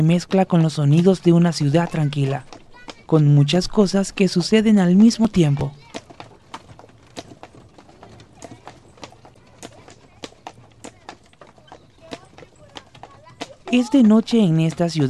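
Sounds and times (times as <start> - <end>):
speech: 0.0 - 5.8, 13.7 - 15.0
horse hooves clip-clopping on a hard surface pulling carriages: 0.0 - 15.0
faint voices murmuring: 5.4 - 14.2.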